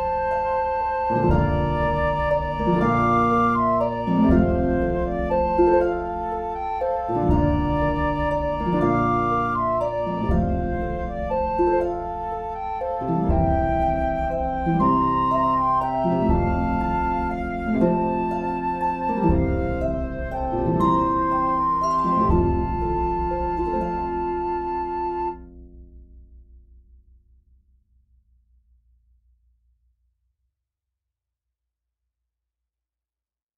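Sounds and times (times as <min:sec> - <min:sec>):
flute melody: 0:00.0 - 0:25.7.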